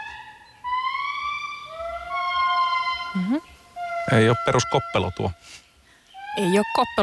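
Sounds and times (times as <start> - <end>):
small primate calling in Andasibe forest, Madagascar: 1.6 - 5.4, 6.2 - 7.0
speech: 3.1 - 3.5, 4.1 - 5.6, 6.4 - 7.0.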